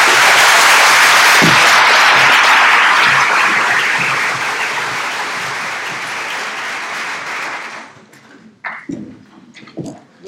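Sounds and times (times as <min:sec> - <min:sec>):
audience applause: 0:00.0 - 0:08.1.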